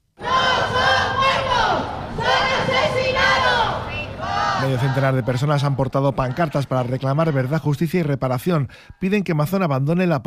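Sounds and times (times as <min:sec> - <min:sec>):
protest crowd chanting outside Congress: 0:00.2 - 0:07.7
speech: 0:04.7 - 0:10.2.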